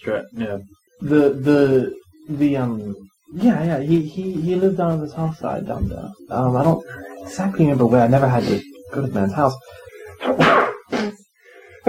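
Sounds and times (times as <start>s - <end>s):
speech: 0.0s - 11.2s
sneeze: 10.2s - 11.2s.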